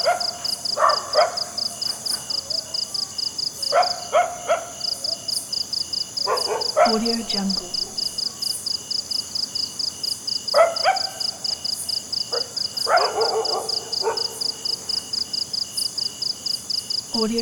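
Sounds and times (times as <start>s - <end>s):
dog yelping: 0.0s - 3.0s, 3.7s - 5.3s, 6.2s - 8.0s, 10.5s - 11.5s, 12.3s - 14.9s
cricket chirping: 0.0s - 17.4s
speech: 6.9s - 7.6s.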